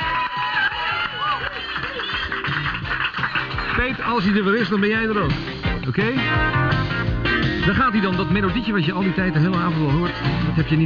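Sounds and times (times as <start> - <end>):
audience applause: 0.0 - 5.0
speech: 3.8 - 7.0, 7.7 - 10.8.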